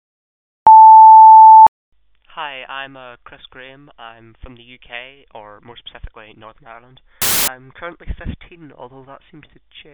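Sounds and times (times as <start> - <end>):
medium frequency voicemail beep tone: 0.7 - 1.7
speech: 2.4 - 9.9.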